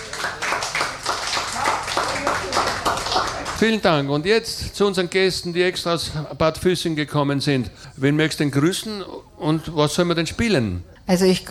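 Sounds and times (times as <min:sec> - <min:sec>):
audience applause: 0:00.0 - 0:04.1
speech: 0:03.6 - 0:11.4.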